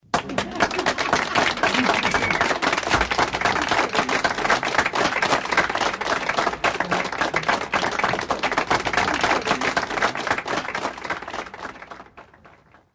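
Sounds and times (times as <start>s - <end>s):
laughter: 0.0s - 12.2s
applause: 0.0s - 12.9s.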